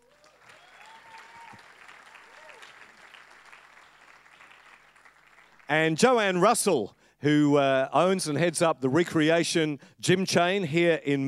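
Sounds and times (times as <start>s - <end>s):
faint audience applause welcoming a retired professional soccer player: 0.0s - 5.7s
speech: 5.7s - 11.2s.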